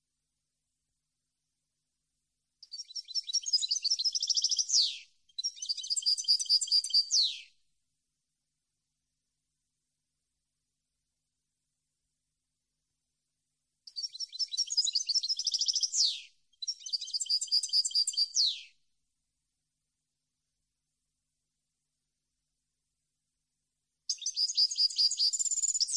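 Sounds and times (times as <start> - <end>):
European goldfinch song: 2.6 - 7.6, 13.9 - 18.8, 24.1 - 25.9.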